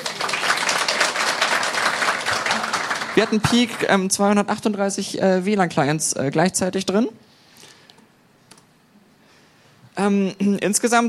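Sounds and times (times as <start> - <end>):
audience applause: 0.0 - 4.0
speech: 3.2 - 7.3, 10.0 - 11.0.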